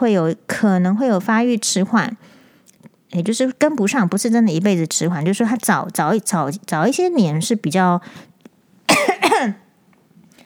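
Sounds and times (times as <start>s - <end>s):
speech: 0.0s - 2.4s, 3.1s - 8.3s, 9.4s - 9.6s
harsh raspy coughs: 8.9s - 9.6s.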